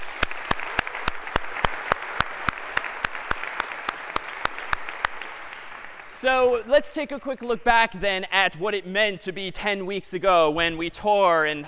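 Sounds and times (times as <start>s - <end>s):
round of applause for the staff: 0.0s - 6.7s
speech: 6.2s - 11.6s.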